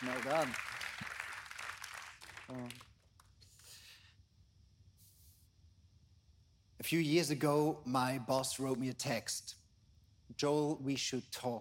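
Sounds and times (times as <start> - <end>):
speech: 0.0 - 0.7, 2.5 - 2.9, 6.8 - 9.6, 10.3 - 11.6
crowd applauding: 0.0 - 3.0.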